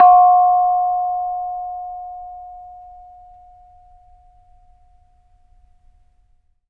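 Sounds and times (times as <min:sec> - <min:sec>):
bonang gong note F5: 0:00.0 - 0:02.1.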